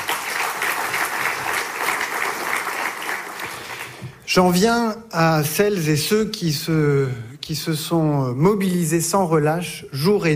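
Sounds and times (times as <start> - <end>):
audience applauding: 0.0 - 4.2
speech: 4.4 - 10.3.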